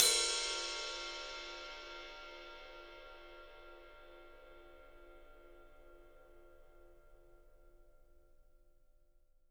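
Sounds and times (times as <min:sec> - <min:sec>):
ride cymbal, 3D drums: 0:00.0 - 0:04.4.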